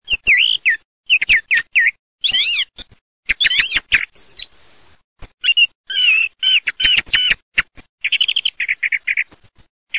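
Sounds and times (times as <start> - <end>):
thrush song: 0.0 - 7.4, 8.0 - 9.3.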